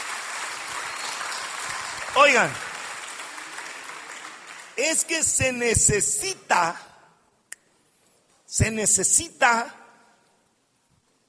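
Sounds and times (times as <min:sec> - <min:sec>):
applause: 0:00.0 - 0:05.9
speech: 0:02.2 - 0:02.7, 0:04.8 - 0:06.9, 0:08.5 - 0:09.8.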